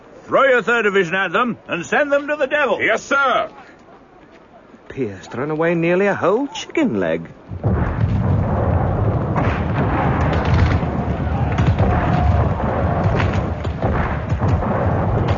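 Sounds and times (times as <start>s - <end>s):
crackling bursts: 0.0s - 15.3s
speech: 0.3s - 3.6s, 5.0s - 7.8s
heavy artillery cannon fire: 7.5s - 15.3s.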